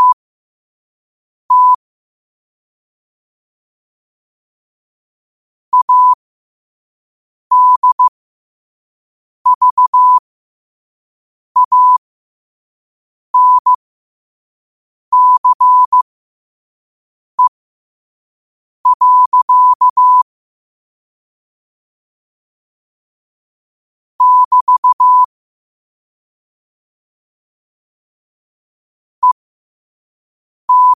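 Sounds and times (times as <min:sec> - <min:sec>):
morse code at 5 wpm: 0:01.5 - 0:01.8, 0:05.8 - 0:06.2, 0:07.5 - 0:08.1, 0:09.5 - 0:10.2, 0:11.6 - 0:12.0, 0:13.4 - 0:13.7, 0:15.2 - 0:16.0, 0:18.9 - 0:20.2, 0:24.2 - 0:25.3, 0:30.7 - 0:30.9.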